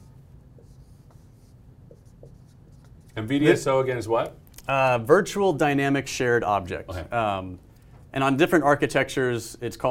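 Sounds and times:
pen scratching while drawing a diagram: 0.0 - 3.2
low hum: 0.0 - 9.8
speech: 3.2 - 9.8.

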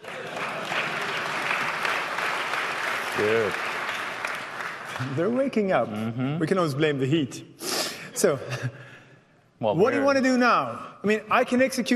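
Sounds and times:
audience clapping: 0.0 - 5.5
speech: 3.2 - 3.7, 5.0 - 7.6, 8.2 - 8.9, 9.6 - 11.9.

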